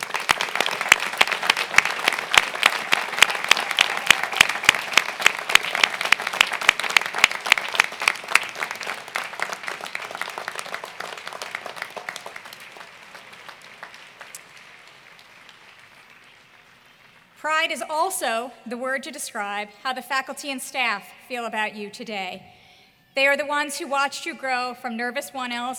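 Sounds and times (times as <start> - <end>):
audience applause: 0.0 - 17.4
speech: 17.7 - 22.5, 23.2 - 25.7.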